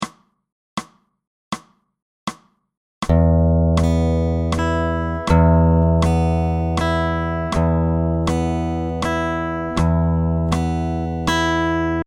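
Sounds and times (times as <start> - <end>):
guitar fingerpicking: 3.1 - 12.0.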